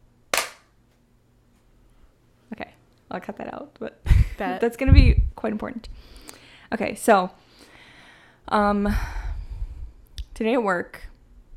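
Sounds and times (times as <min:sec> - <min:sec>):
synchronization hand clap: 0:00.3 - 0:00.7
speech: 0:02.5 - 0:07.4, 0:08.5 - 0:09.2, 0:10.4 - 0:11.1.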